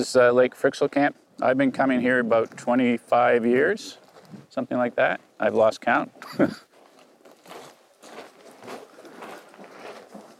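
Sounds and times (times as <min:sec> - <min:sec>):
speech: 0:00.0 - 0:06.7
laughter: 0:06.2 - 0:06.7
boots crunching on loose rock on a stony hillside near Lake Fryxell Camp, Antarctica: 0:06.8 - 0:10.3.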